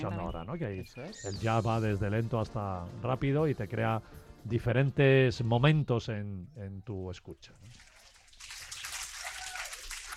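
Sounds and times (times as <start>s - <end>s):
speech: 0.0s - 7.9s
applause: 7.7s - 10.1s.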